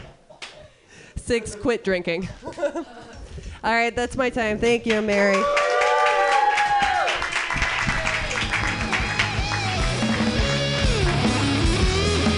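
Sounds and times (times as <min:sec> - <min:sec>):
speech: 0:01.3 - 0:05.7
comedy club audience applause: 0:05.3 - 0:12.2
crowd cheering and whooping: 0:05.4 - 0:12.1.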